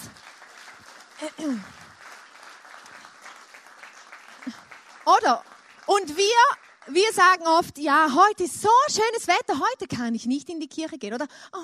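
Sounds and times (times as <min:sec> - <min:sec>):
audience applause: 0:00.0 - 0:07.2
speech: 0:01.2 - 0:01.8, 0:05.1 - 0:11.6.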